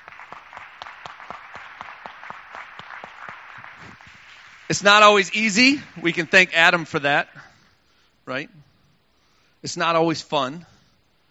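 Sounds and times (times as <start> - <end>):
audience applause: 0.0 - 6.8
speech: 4.7 - 7.4, 8.3 - 8.6, 9.6 - 10.7.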